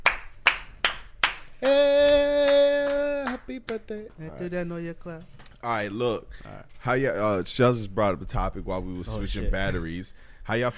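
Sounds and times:
hands clapping: 0:00.0 - 0:04.1
speech: 0:01.6 - 0:01.9, 0:03.5 - 0:10.7.

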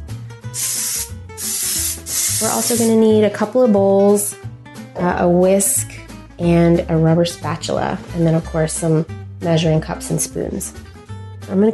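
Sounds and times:
aerosol can of cooking spray hissing onto a sheet pan: 0:00.5 - 0:03.0
speech: 0:00.6 - 0:00.8, 0:02.4 - 0:05.8, 0:06.4 - 0:10.8, 0:11.5 - 0:11.7.

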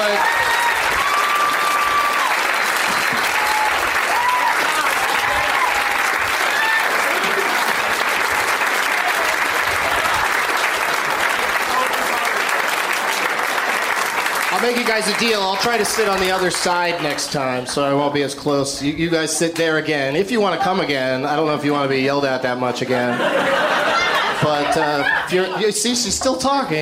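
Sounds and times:
live audience applause at a comedy show: 0:00.0 - 0:18.0
laughter: 0:07.0 - 0:07.9, 0:22.8 - 0:26.8
speech: 0:15.0 - 0:23.6, 0:24.4 - 0:26.8.

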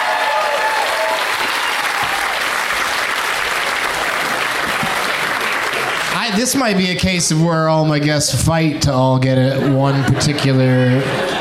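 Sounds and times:
audience applauding a guest: 0:00.0 - 0:06.8
speech: 0:06.3 - 0:11.3
laughter: 0:09.4 - 0:11.3.

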